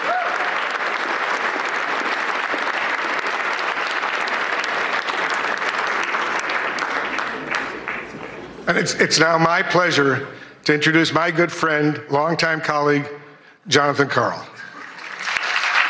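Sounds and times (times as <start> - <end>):
audience applause: 0.0 - 8.6, 14.7 - 15.8
speech: 8.7 - 14.5.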